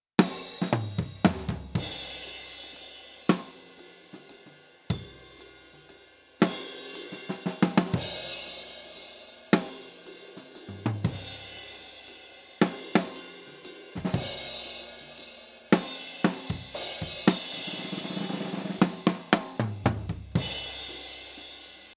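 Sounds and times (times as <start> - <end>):
drums: 0.0 - 21.9.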